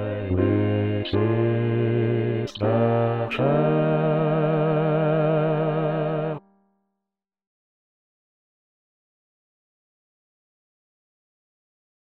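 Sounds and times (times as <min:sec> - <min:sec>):
bass voice singing a sanctus: 0:00.0 - 0:06.4.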